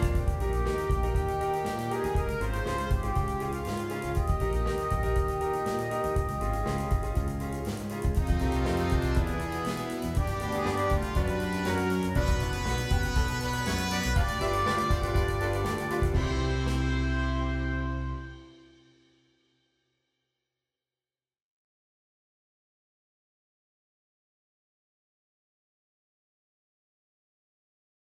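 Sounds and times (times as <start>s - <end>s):
samba music: 0.0s - 18.6s.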